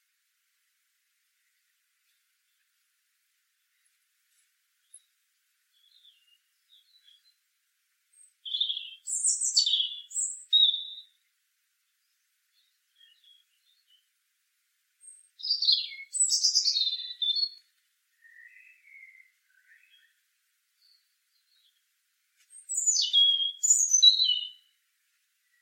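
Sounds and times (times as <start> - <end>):
European robin singing, Erithacus rubecula: 4.8 - 7.5, 8.1 - 14.2, 15.0 - 21.9, 22.5 - 24.8, 25.4 - 25.6.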